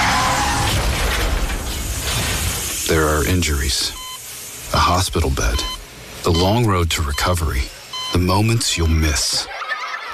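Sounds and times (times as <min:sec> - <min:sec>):
car crash with shattering impact: 0:00.0 - 0:02.9
speech: 0:03.3 - 0:04.0, 0:04.7 - 0:09.6
laughter: 0:09.4 - 0:10.1.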